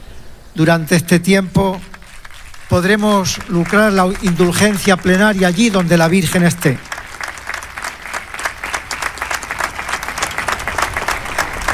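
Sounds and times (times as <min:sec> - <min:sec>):
speech: 0:00.6 - 0:01.9, 0:02.7 - 0:06.9
audience applause: 0:01.8 - 0:11.7.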